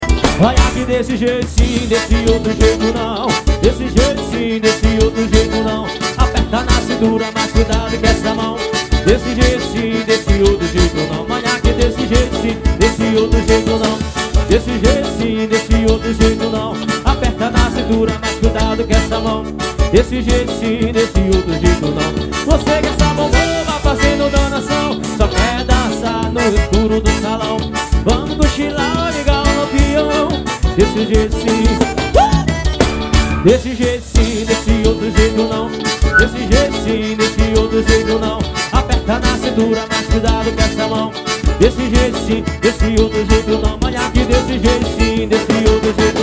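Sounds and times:
forró music: 0:00.0 - 0:46.2.

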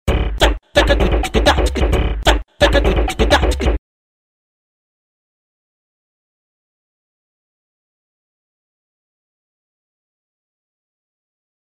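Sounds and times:
funk beat: 0:00.1 - 0:03.8.

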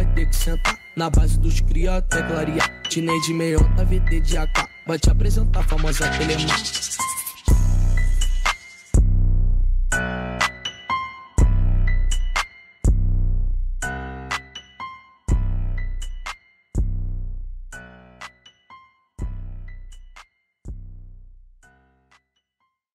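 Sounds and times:
trap funk music: 0:00.0 - 0:10.7, 0:11.4 - 0:14.6, 0:15.3 - 0:17.8.

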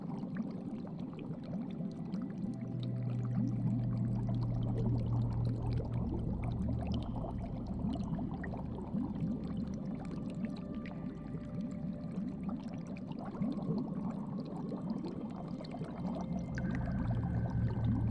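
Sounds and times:
aquarium ambience: 0:00.0 - 0:18.0.

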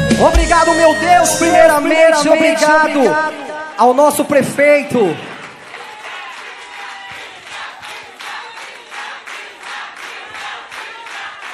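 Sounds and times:
speech: 0:00.2 - 0:05.3
crowd cheering: 0:02.2 - 0:11.5
crowd applauding: 0:03.6 - 0:11.5.

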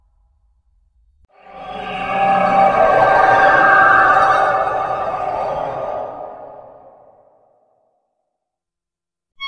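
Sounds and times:
scary horror sound effects: 0:01.3 - 0:07.4.

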